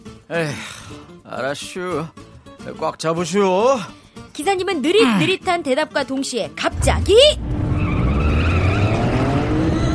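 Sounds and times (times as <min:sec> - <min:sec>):
speech: 0:00.3 - 0:07.5
bus engine roaring: 0:06.7 - 0:09.9
bus tires squealing: 0:07.4 - 0:09.9.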